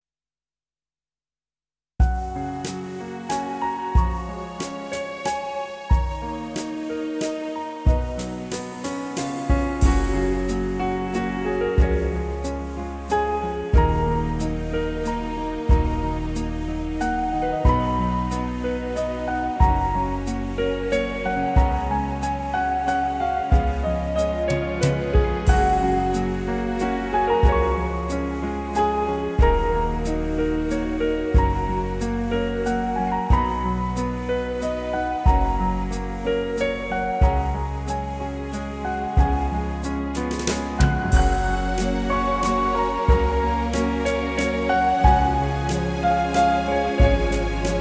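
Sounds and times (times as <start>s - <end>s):
waltz music: 2.1s - 47.7s.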